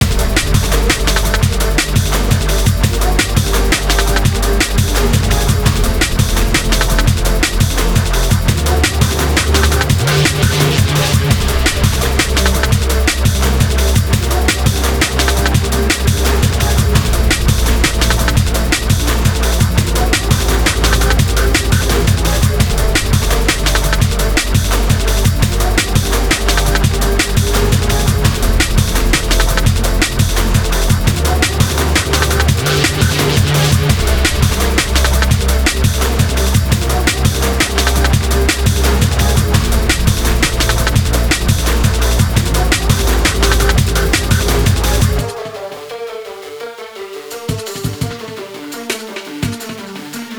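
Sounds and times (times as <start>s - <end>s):
industrial breakbeat: 0.0s - 50.3s.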